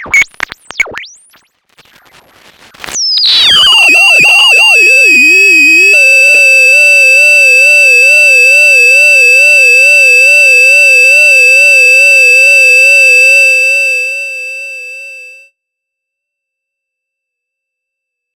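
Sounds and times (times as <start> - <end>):
OpenTheremin theremin: 3.2 - 15.4.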